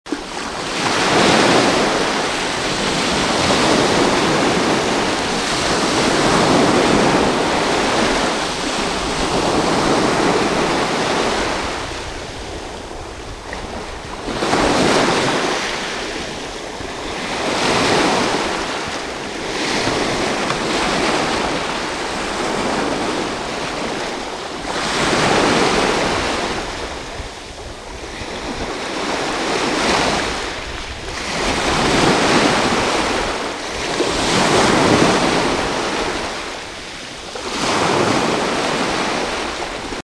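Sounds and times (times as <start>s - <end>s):
sea waves: 0.1s - 40.0s.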